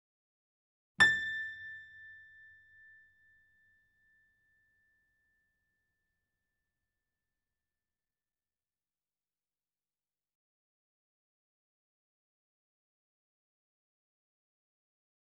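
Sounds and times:
KORG digital piano notes: 1.0 - 3.0.

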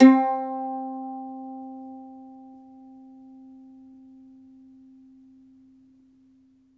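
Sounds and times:
mandolin plucked strings: 0.0 - 5.0.

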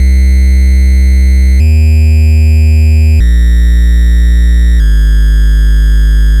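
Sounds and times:
NES chiptune bass: 0.0 - 6.3.

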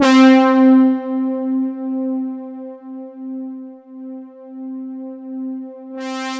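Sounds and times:
jungle brass note C3: 0.0 - 2.6.

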